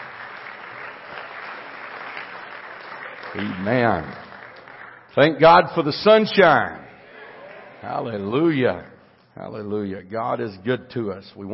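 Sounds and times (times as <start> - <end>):
audience applause, hand clapping: 0.0 - 5.1, 7.0 - 8.2
speech: 3.3 - 4.2, 5.2 - 6.8, 7.8 - 11.5.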